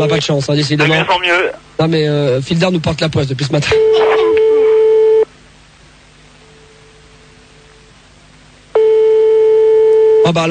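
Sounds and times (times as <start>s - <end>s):
speech: 0.0s - 4.2s, 10.3s - 10.5s
faint hum: 0.0s - 10.5s
telephone ring tone unanswered: 3.8s - 5.3s, 8.8s - 10.3s.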